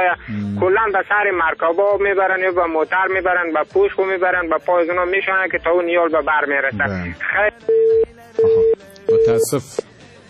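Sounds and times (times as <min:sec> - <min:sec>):
speech: 0:00.0 - 0:08.6, 0:09.2 - 0:09.9
telephone tone after a dropped call: 0:07.7 - 0:09.5.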